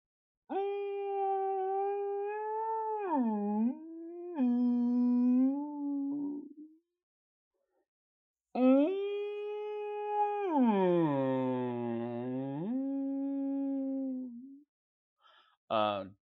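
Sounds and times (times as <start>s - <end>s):
human voice imitating a blue whale call: 0.5s - 6.7s, 8.6s - 14.6s.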